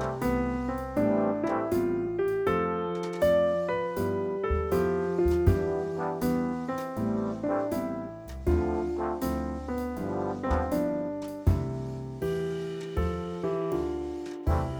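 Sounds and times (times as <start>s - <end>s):
slow swing music: 0.0s - 14.7s.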